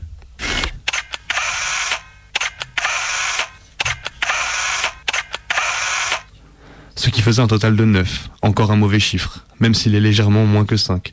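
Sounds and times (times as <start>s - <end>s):
camera film advance whirring: 0.4s - 6.4s
camera shutter clicks taking photographs: 0.5s - 6.3s
speech: 7.1s - 11.1s.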